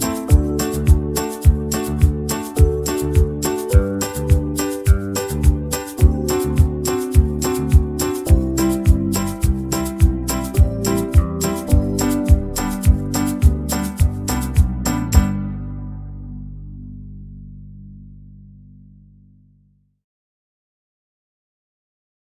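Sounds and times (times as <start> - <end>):
banjo backing track in the key of G: 0.0 - 15.5.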